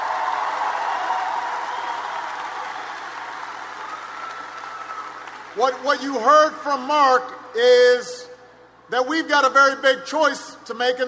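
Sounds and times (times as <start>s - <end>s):
audience applause: 0.0s - 5.6s
speech: 5.6s - 8.2s, 8.9s - 11.0s.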